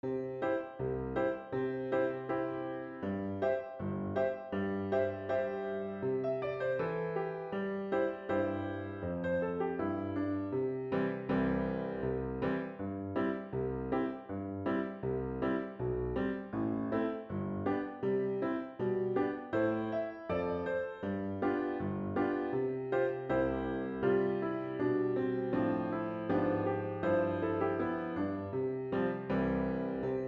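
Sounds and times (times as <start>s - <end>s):
piano: 0.0s - 30.2s.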